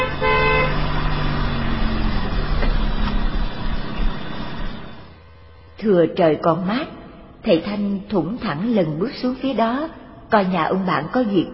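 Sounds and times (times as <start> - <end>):
car horn honking as a car pulls into a yard: 0.0 - 1.1
loud steady car engine rumble: 0.0 - 5.9
speech: 5.8 - 11.5.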